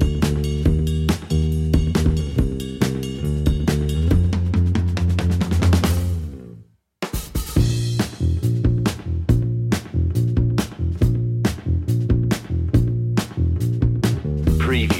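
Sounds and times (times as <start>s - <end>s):
bass drums: 0.0s - 14.9s.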